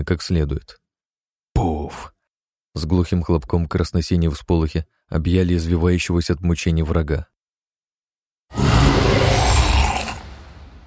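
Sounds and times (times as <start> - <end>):
speech: 0.0 - 0.8, 2.8 - 7.3
monster roar: 8.5 - 10.8.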